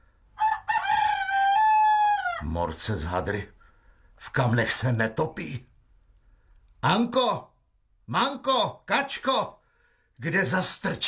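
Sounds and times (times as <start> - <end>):
rooster crowing: 0.3 - 2.5
speech: 2.5 - 3.6, 4.2 - 5.7, 6.8 - 7.5, 8.1 - 9.6, 10.2 - 11.0.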